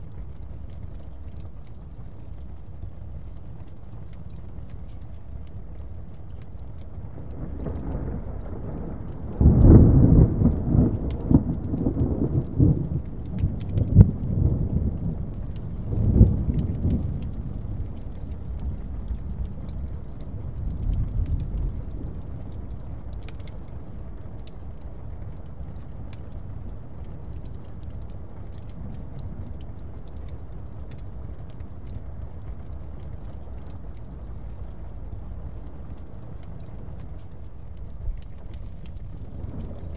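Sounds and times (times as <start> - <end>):
soft crackles and light taps: 0.0 - 39.9
distant thunderstorm rumbling: 7.2 - 24.6, 38.1 - 39.9.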